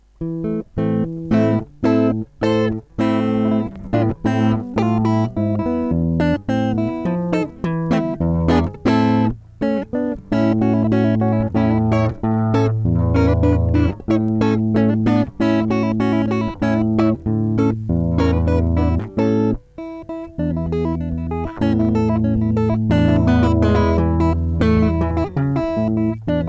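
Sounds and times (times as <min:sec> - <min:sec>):
guitar: 0:00.0 - 0:26.4.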